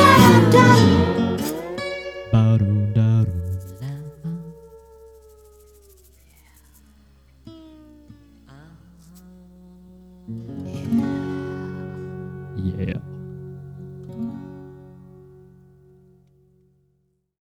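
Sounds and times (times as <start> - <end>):
short jazz tune: 0.0 - 3.8.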